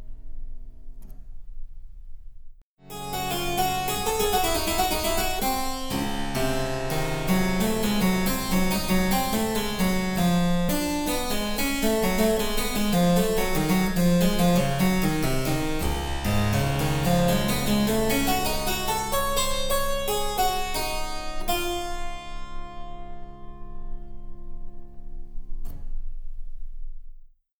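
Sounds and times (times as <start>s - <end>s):
harpsichord: 2.8s - 24.7s.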